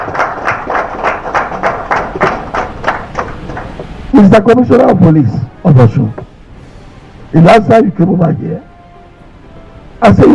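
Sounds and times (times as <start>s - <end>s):
audience clapping in a steady even rhythm: 0.0s - 3.9s
speech: 4.2s - 6.2s, 7.3s - 8.7s, 10.0s - 10.3s.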